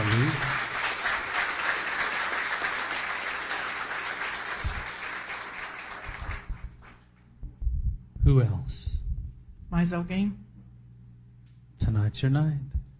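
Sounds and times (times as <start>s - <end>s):
audience applause and hand clapping: 0.0s - 7.1s
speech: 8.3s - 8.9s, 9.7s - 10.4s, 11.9s - 12.8s.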